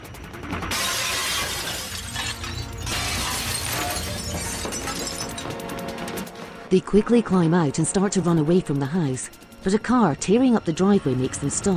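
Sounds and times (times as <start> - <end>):
table smashing through glass window: 0.7 - 5.6
speech: 6.7 - 11.7.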